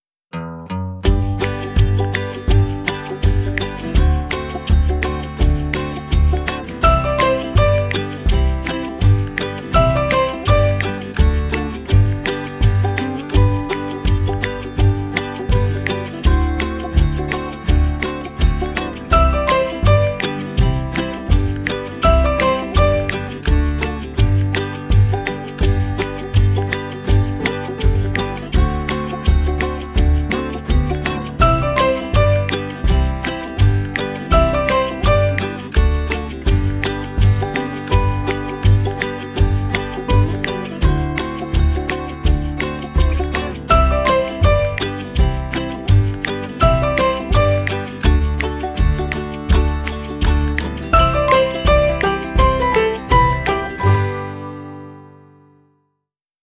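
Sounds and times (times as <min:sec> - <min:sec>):
Spanish instrumental song: 0:00.3 - 0:55.8.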